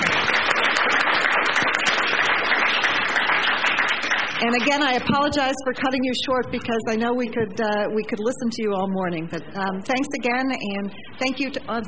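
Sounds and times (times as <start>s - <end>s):
audience applause for speakers: 0.0s - 5.0s
speech: 4.4s - 11.8s.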